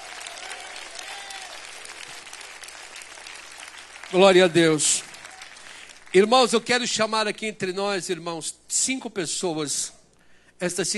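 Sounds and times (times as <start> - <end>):
faint cheers: 0.0 - 1.8
audience clapping: 0.0 - 6.6
speech: 4.1 - 5.1, 6.1 - 10.0, 10.6 - 10.9.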